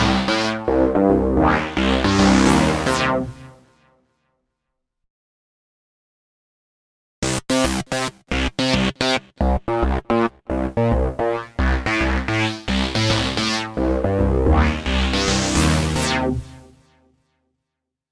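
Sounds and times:
Virus TI2 synthesizer: 0.0s - 3.6s, 7.4s - 16.8s.

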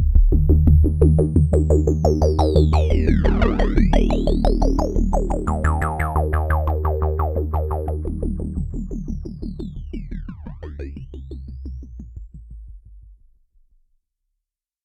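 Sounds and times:
OB8 synthesizer with external filter FM: 0.2s - 10.9s.

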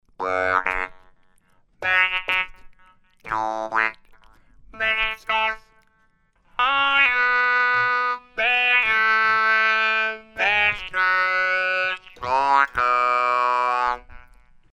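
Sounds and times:
Dunlop MXR M222 talkbox guitar: 0.1s - 14.6s.

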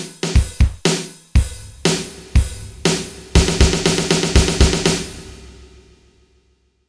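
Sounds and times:
rock music: 0.5s - 5.5s.

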